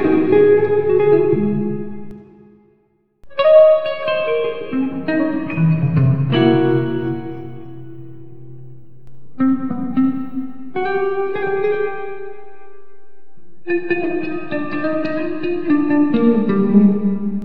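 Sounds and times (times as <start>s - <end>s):
guitar intro: 0.0s - 2.5s, 3.3s - 17.4s.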